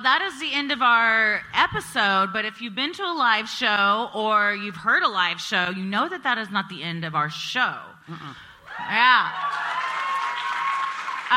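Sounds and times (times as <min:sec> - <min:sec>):
speech: 0:00.0 - 0:09.7
audience applause: 0:09.3 - 0:11.3.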